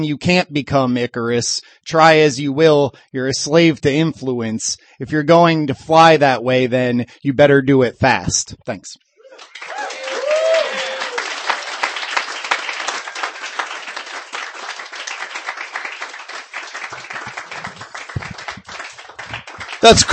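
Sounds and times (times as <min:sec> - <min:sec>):
speech: 0:00.0 - 0:09.8, 0:19.8 - 0:20.1
audience applause for a reader at a reading event: 0:09.3 - 0:20.1.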